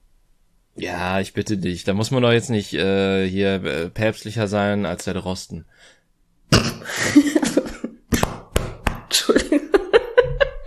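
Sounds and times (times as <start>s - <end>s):
speech: 0.8s - 6.0s
person coughing after choking on a drink: 6.5s - 8.4s
laughter: 6.9s - 8.3s, 9.1s - 10.6s.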